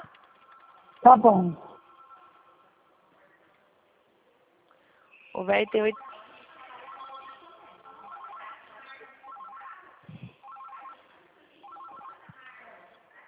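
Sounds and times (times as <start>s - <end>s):
telephone ringing: 0.0s - 3.0s, 5.6s - 12.4s
speech: 1.0s - 1.6s, 5.4s - 6.1s.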